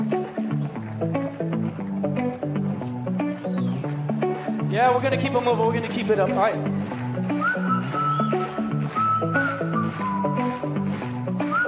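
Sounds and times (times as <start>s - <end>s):
rhythmic instrumental accompaniment: 0.0s - 11.6s
speech: 4.8s - 7.0s
whistle melody: 7.3s - 11.6s.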